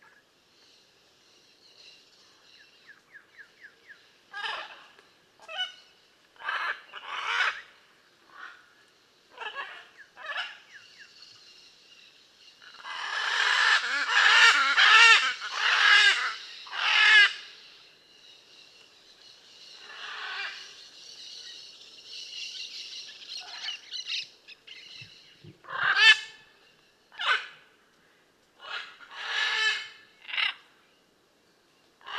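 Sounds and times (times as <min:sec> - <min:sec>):
hiss: 0:00.0 - 0:32.1
blue-and-yellow macaw squawking: 0:04.3 - 0:04.8, 0:06.4 - 0:07.7, 0:09.3 - 0:10.6, 0:12.7 - 0:17.4, 0:25.6 - 0:26.4, 0:27.1 - 0:27.6, 0:28.6 - 0:30.6.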